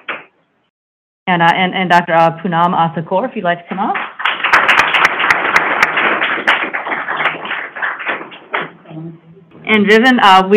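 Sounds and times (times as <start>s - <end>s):
speech: 1.3s - 4.1s, 9.7s - 10.5s
audience clapping: 3.8s - 8.8s.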